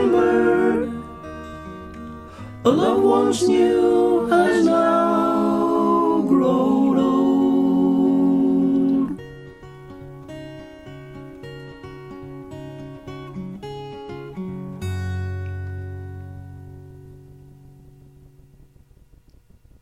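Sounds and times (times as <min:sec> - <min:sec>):
mezzo choir singing harmonies: 0:00.0 - 0:01.4, 0:02.6 - 0:09.2.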